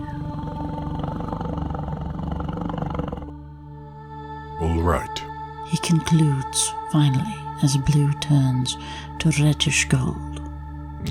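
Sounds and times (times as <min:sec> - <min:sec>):
big cat purring: 0:00.0 - 0:03.4
speech: 0:04.8 - 0:10.3.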